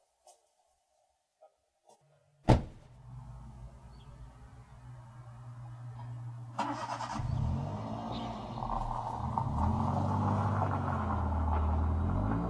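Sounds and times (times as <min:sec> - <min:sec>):
car engine starting up and driving away: 0:03.0 - 0:12.4.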